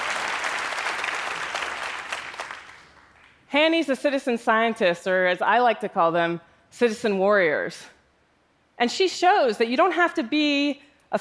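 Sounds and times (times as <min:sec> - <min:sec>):
audience clapping: 0:00.0 - 0:03.5
speech: 0:03.5 - 0:08.0, 0:08.8 - 0:11.1.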